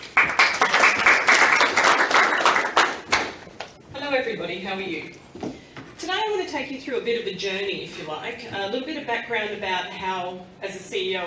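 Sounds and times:
audience applause: 0.0s - 3.4s
speech: 4.3s - 5.6s, 6.3s - 11.2s.

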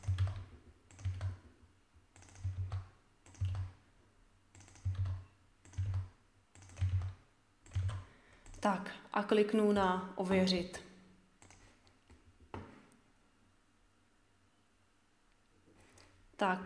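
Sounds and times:
typing a code on computer keyboard: 0.0s - 3.8s, 4.5s - 8.7s, 11.4s - 11.8s
speech: 8.6s - 10.8s, 16.4s - 16.6s.

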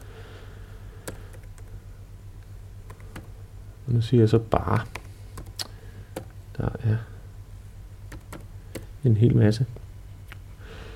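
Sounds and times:
low electrical hum: 0.0s - 10.9s
typing on a computer keyboard: 1.0s - 1.7s, 2.9s - 3.3s, 4.9s - 6.3s, 8.1s - 8.9s
speech: 3.9s - 5.0s, 9.0s - 9.8s.

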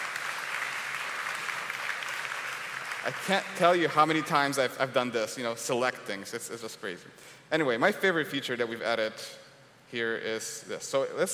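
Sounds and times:
audience giving a short clap: 0.0s - 4.0s
speech: 3.0s - 11.3s.

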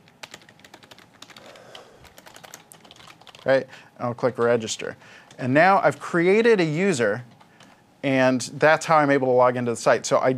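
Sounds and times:
typing an email address on a computer keyboard: 0.0s - 3.5s
speech: 3.4s - 7.3s, 8.0s - 10.3s.

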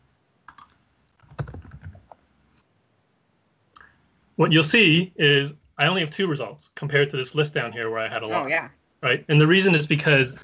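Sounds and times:
typing a search query on a computer keyboard: 0.5s - 2.2s
speech: 4.4s - 10.4s.

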